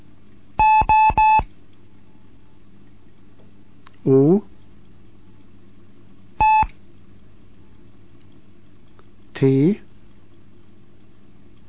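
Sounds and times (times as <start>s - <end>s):
Morse code tones: 0.6s - 1.5s, 6.4s - 6.7s
speech: 4.0s - 4.5s, 9.4s - 9.8s.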